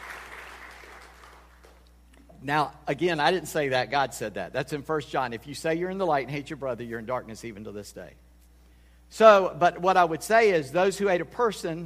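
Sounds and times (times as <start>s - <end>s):
crowd clapping: 0.0s - 1.9s
speech: 2.4s - 8.2s, 9.1s - 11.8s.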